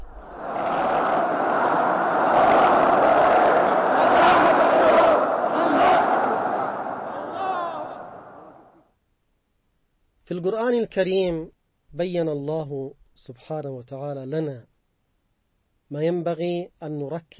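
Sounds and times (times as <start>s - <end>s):
large crowd collective shout: 0.0s - 8.8s
speech: 10.4s - 14.7s, 15.9s - 17.3s.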